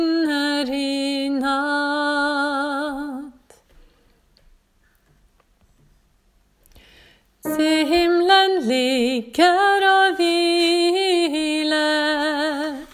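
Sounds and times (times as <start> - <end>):
soprano voice: 0.0 - 3.6, 7.4 - 12.9.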